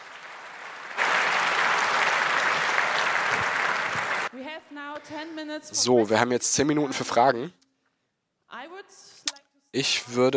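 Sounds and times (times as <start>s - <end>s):
crowd applause: 0.0s - 4.3s
speech: 4.6s - 7.6s, 8.6s - 10.3s.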